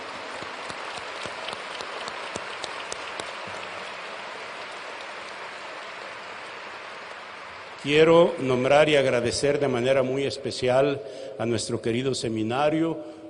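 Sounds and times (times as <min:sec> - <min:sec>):
large crowd clapping: 0:00.0 - 0:09.2
speech: 0:07.8 - 0:13.2.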